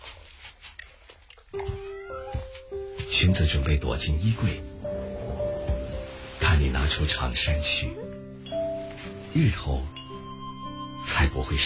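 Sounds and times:
soft music: 0.2s - 11.6s
cat meowing: 1.6s - 2.7s
speech: 3.2s - 4.7s, 6.6s - 8.1s, 9.4s - 10.0s, 11.2s - 11.6s.

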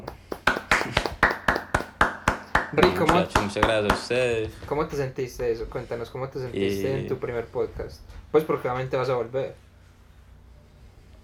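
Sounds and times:
applause: 0.0s - 4.1s
speech: 2.7s - 9.6s.

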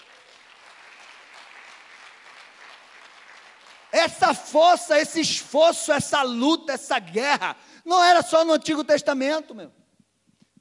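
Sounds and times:
audience applause: 0.0s - 4.5s
speech: 4.0s - 9.8s.

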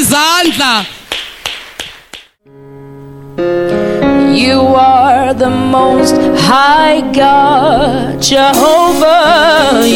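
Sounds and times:
speech: 0.0s - 1.0s, 4.4s - 9.9s
audience clapping: 0.6s - 2.4s.

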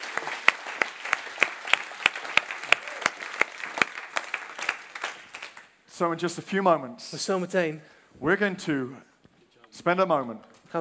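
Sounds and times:
audience applause: 0.0s - 5.7s
speech: 6.0s - 9.1s, 9.7s - 10.7s.

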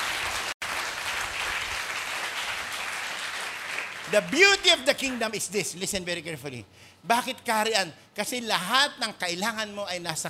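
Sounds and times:
loud audience applause: 0.0s - 5.2s
speech: 4.1s - 10.2s.

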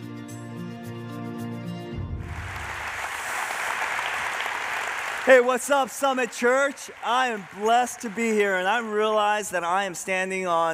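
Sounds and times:
music: 0.0s - 3.2s
church congregation applauding to welcome a pastor: 2.2s - 10.1s
speech: 5.3s - 10.7s.

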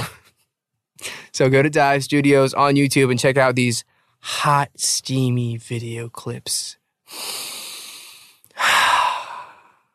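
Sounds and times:
speech: 1.4s - 7.5s
inhaling steam from a humidifier through the nose and throat: 7.1s - 9.8s.

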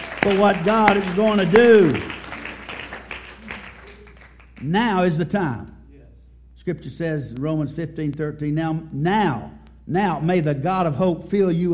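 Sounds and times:
audience clapping hands: 0.0s - 4.8s
speech: 0.2s - 2.1s, 4.6s - 5.8s, 6.6s - 11.7s.

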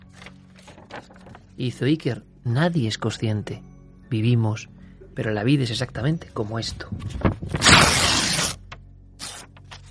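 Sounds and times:
page crackling and rustling: 0.0s - 1.5s, 7.0s - 9.8s
speech: 1.0s - 7.9s
sheet of paper torn from a book: 7.5s - 9.8s.

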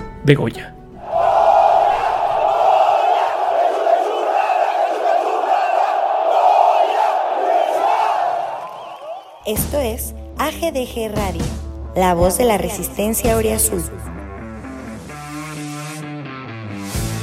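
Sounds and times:
speech: 0.2s - 0.8s, 9.5s - 14.1s
crowd giving a loud collective shout: 1.0s - 9.5s.

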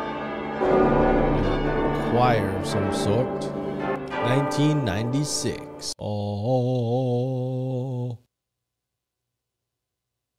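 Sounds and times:
clock tower bell chiming: 0.0s - 5.2s
speech: 2.1s - 8.3s.

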